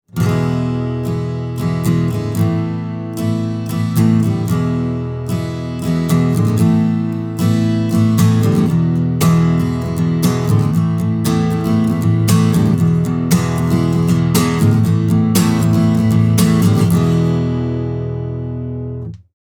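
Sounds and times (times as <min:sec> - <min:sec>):
acoustic strumming: 0:00.1 - 0:19.2.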